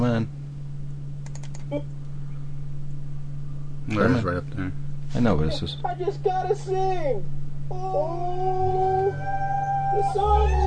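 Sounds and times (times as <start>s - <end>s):
steady low electrical hum: 0.0s - 10.6s
speech: 0.1s - 0.4s, 1.7s - 2.0s, 3.9s - 10.6s
computer mouse clicks: 1.2s - 2.0s.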